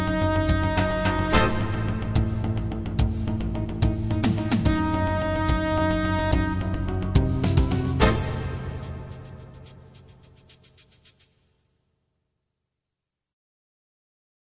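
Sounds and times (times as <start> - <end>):
Roland LA synthesizer music: 0.0 - 10.6.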